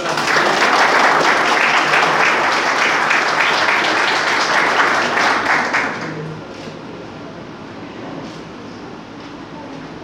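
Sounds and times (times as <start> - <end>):
crowd applause: 0.0 - 6.6.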